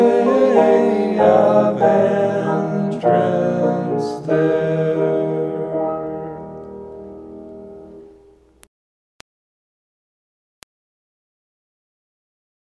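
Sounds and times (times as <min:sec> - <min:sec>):
hymn: 0:00.0 - 0:06.7.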